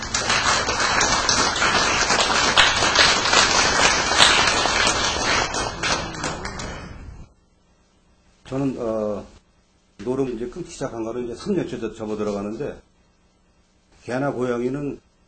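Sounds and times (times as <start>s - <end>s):
audience applause welcoming a guest: 0.0s - 7.0s
speech: 8.5s - 9.4s, 10.0s - 12.9s, 14.0s - 15.0s.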